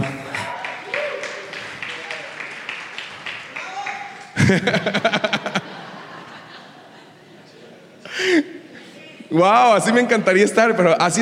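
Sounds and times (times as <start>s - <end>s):
audience applause: 0.0s - 5.6s
laughter: 4.2s - 8.8s
speech: 4.5s - 5.3s, 9.3s - 11.2s.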